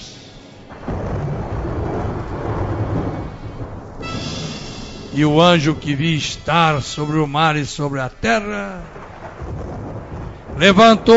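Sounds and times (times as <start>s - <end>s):
deep rolling thunder rumbling: 0.0s - 11.1s
broad hiss: 2.4s - 9.0s
speech: 5.2s - 9.1s, 10.6s - 11.1s.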